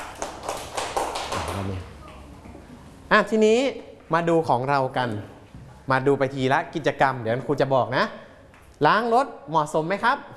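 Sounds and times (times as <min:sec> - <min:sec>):
children clapping for a classmate: 0:00.0 - 0:02.2
speech: 0:01.6 - 0:01.9, 0:03.1 - 0:08.2, 0:08.8 - 0:10.3.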